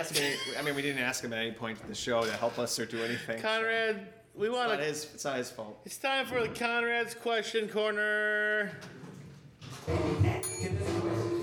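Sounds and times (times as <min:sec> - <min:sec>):
laughter: 0:00.0 - 0:01.2, 0:02.2 - 0:03.3
speech: 0:00.0 - 0:09.0
bell ringing: 0:10.4 - 0:10.9.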